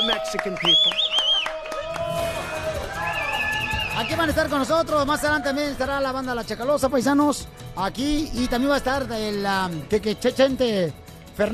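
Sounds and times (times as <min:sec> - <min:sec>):
people clapping: 0:00.0 - 0:05.6
crowd cheering: 0:00.0 - 0:06.2
speech: 0:00.2 - 0:01.3, 0:04.0 - 0:11.5.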